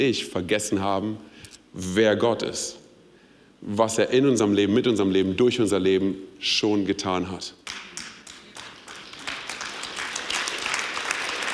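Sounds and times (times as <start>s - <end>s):
speech: 0.0s - 2.8s, 3.6s - 7.6s
audience clapping: 7.6s - 11.5s.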